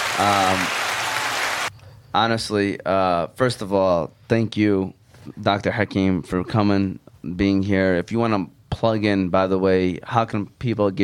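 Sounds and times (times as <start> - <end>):
audience applause: 0.0 - 1.7
speech: 0.2 - 0.8, 2.1 - 11.0.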